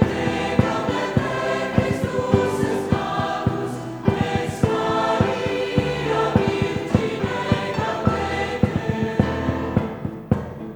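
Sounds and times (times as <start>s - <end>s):
Christmas song: 0.0s - 10.3s.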